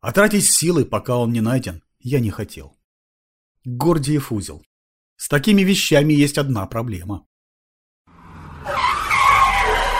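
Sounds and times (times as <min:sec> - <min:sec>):
speech: 0:00.0 - 0:02.8, 0:03.6 - 0:07.3
tires of a car with tinted windows screeching as it brakes sharply in a cemetery: 0:08.1 - 0:09.9.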